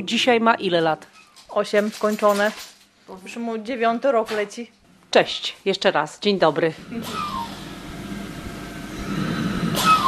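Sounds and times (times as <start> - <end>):
speech: 0.0 - 7.5
respirator breathing for a child: 6.8 - 10.0.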